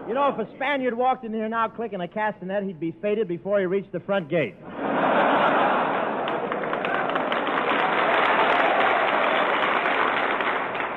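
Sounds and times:
speech: 0.1 - 4.8
laughter: 4.6 - 7.1
large audience applause: 5.4 - 10.9.

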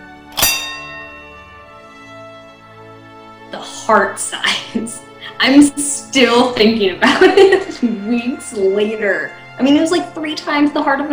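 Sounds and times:
horse race starter's bell ringing: 0.3 - 2.5
speech: 3.5 - 11.1.

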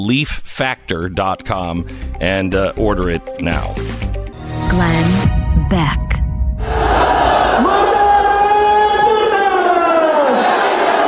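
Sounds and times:
speech: 0.0 - 4.0, 4.7 - 6.1
angry mob in Pakistan shouting and chanting: 6.6 - 11.0.

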